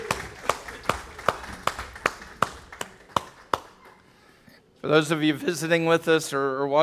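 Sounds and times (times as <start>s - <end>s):
crowd clapping in rhythm to cheer kids: 0.0s - 4.2s
speech: 4.8s - 6.8s.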